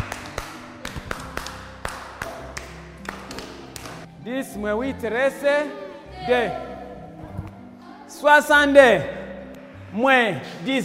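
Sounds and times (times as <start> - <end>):
class clapping: 0.0 - 4.1
speech: 4.2 - 6.7, 8.2 - 9.2, 9.9 - 10.8.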